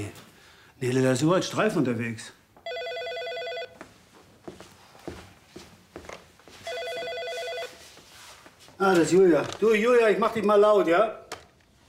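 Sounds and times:
speech: 0.8s - 2.4s, 8.8s - 11.2s
soft footsteps and shuffling: 2.5s - 10.0s
electronic telephone ringing: 2.6s - 3.8s, 6.6s - 7.9s.

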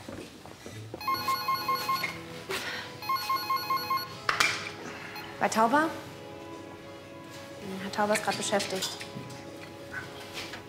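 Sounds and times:
telephone ringing on an outgoing call: 1.0s - 2.2s, 3.0s - 4.2s
speech: 5.4s - 6.1s, 7.8s - 9.0s.

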